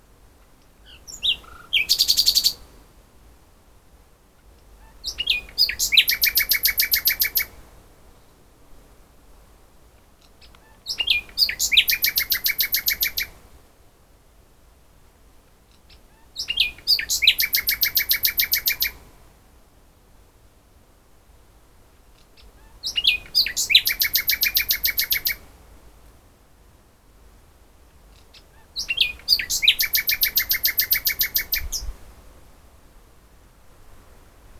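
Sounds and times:
common nightingale singing: 0.6s - 2.7s, 4.6s - 7.6s, 10.2s - 13.4s, 15.7s - 19.0s, 22.2s - 25.4s, 28.1s - 31.9s.

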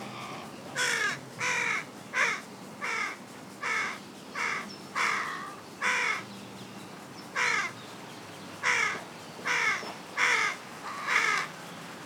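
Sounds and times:
Carrion crow Corvus corone giving harsh caws: 0.2s - 6.2s, 7.4s - 7.7s, 8.6s - 11.5s.

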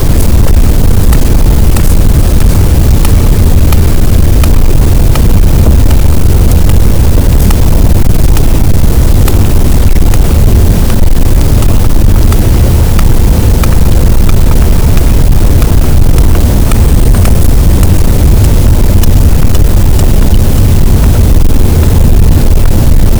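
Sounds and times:
sperm whale Physeter macrocephalus: 0.0s - 22.9s
gaussian noise: 0.0s - 23.1s.

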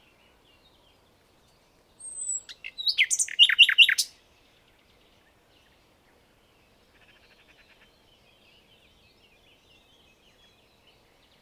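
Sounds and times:
common nightingale song phrase: 2.0s - 4.1s.

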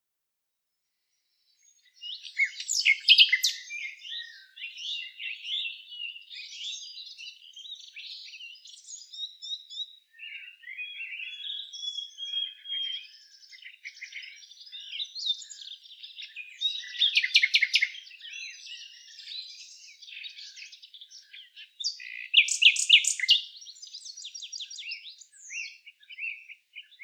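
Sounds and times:
common nightingale singing: 1.6s - 27.0s.

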